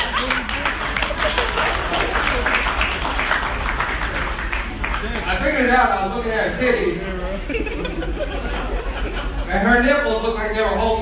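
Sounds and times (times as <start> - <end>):
laughter: 0.0 - 3.3, 7.2 - 10.1
crowd applauding: 0.0 - 5.5
speech: 5.7 - 8.5, 9.5 - 10.9.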